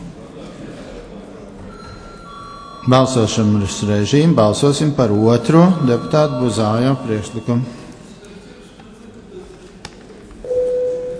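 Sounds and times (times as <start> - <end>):
murmur: 0.0 - 11.1
voting bell ringing in a parliament chamber: 1.7 - 8.0
speech: 2.8 - 7.8.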